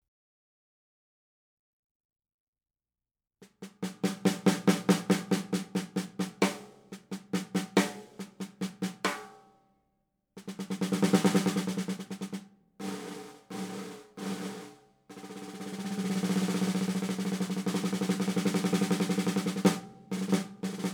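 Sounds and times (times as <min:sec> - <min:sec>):
70s 5x14 Lud Acro snare drum: 0:03.5 - 0:09.4, 0:10.4 - 0:20.9.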